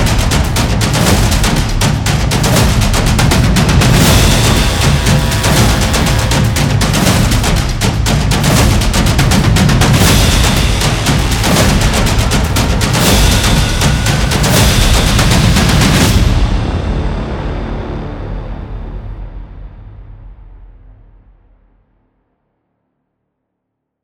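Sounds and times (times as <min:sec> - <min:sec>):
intense cinematic drum beats: 0:00.0 - 0:19.2.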